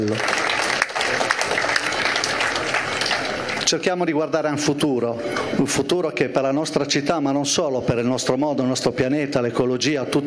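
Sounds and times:
speech: 0:00.0 - 0:00.4, 0:03.7 - 0:10.2
audience applause at an event on vintage sailing boats and the America's Cup: 0:00.0 - 0:03.8.

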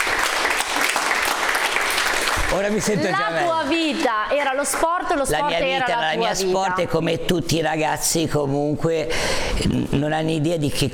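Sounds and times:
crowd applause of encouragement: 0:00.0 - 0:05.1
speech: 0:02.5 - 0:10.9.

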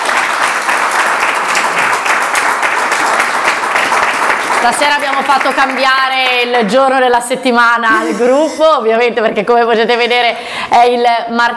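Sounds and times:
audience applause: 0:00.0 - 0:06.4
speech: 0:04.6 - 0:11.5.

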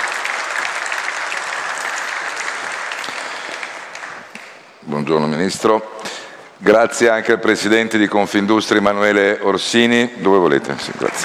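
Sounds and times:
audience applauding: 0:00.0 - 0:04.7, 0:10.5 - 0:11.2
speech: 0:05.0 - 0:06.0, 0:06.6 - 0:11.2.

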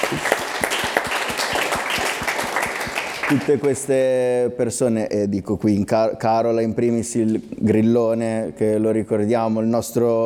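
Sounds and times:
audience applause with synchronized rhythmic claps: 0:00.0 - 0:03.8
speech: 0:00.1 - 0:00.4, 0:03.3 - 0:10.2.

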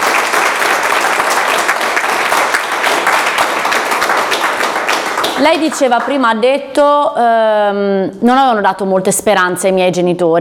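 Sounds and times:
audience applause: 0:00.0 - 0:06.2
speech: 0:05.4 - 0:10.4.

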